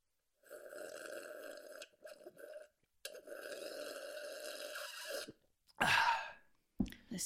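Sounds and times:
noisy slurping of water: 0.4 - 5.4.

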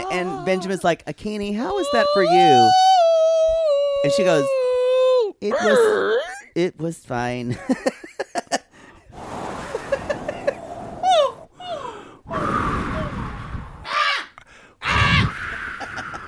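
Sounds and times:
person imitating crow caws: 0.0 - 0.9, 1.6 - 6.5, 13.9 - 16.2
speech: 0.1 - 2.9, 4.0 - 4.6, 5.4 - 8.1
soft breathy noises: 8.7 - 14.8.

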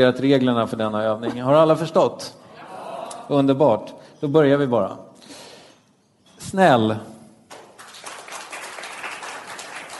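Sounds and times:
speech: 0.0 - 2.4, 3.3 - 5.1, 6.4 - 7.1
partial hand clapping: 7.5 - 9.9.

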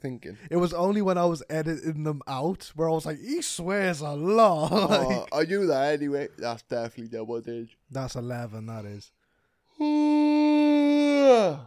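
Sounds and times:
speech: 0.0 - 9.2, 9.8 - 11.6
big drawn-out yawn: 9.8 - 11.6.

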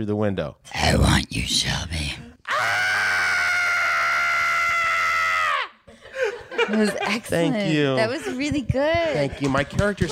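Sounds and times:
speech: 0.0 - 2.8, 6.7 - 10.1
woman screaming: 2.5 - 5.8
laughter: 5.9 - 10.1.

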